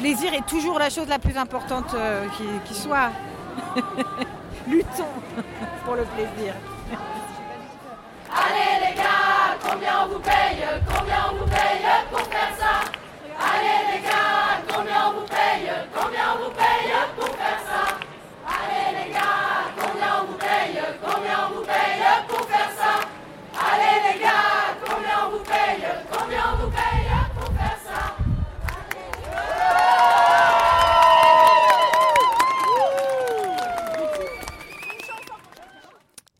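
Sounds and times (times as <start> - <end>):
speech: 0.0 - 7.2
protest crowd chanting slogans at a demonstration: 1.6 - 30.0
laughter: 3.5 - 7.5
crowd cheering and shouting: 29.4 - 34.3.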